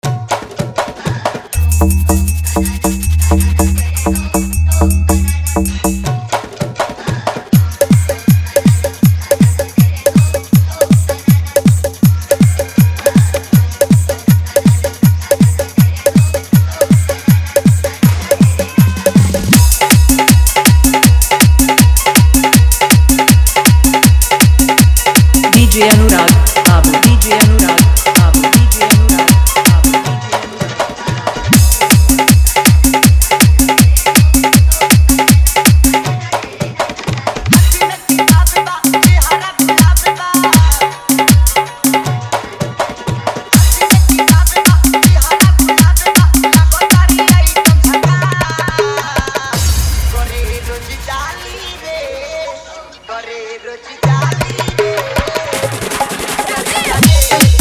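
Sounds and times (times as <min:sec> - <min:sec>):
Desi style dholak drum bass mix: 0:00.0 - 0:52.6, 0:54.0 - 0:57.5.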